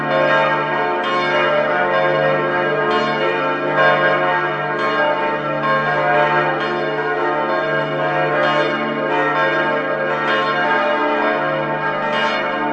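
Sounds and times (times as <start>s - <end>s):
bells ringing together: 0.0s - 12.7s.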